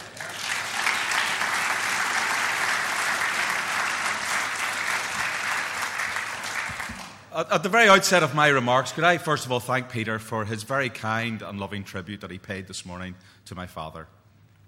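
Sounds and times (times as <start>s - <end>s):
audience applause: 0.0s - 7.3s
speech: 7.4s - 14.2s.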